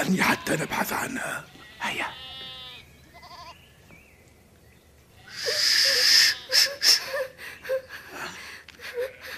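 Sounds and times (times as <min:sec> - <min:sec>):
speech: 0:00.0 - 0:02.1
shepherd girl moaning and gasping in a radio drama: 0:05.3 - 0:09.3.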